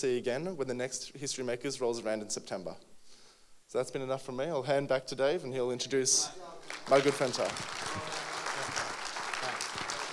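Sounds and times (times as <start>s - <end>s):
speech: 0.0s - 2.9s, 3.7s - 8.2s
audience applause: 6.6s - 10.1s.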